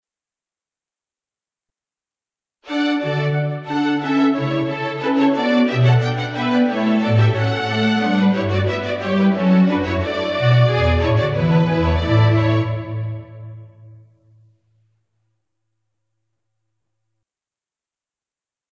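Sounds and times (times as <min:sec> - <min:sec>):
instrumental music: 0:02.6 - 0:15.0.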